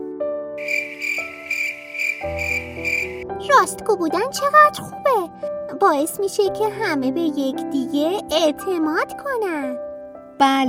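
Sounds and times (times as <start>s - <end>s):
cricket chirping: 0.6s - 3.2s
speech: 2.2s - 10.6s.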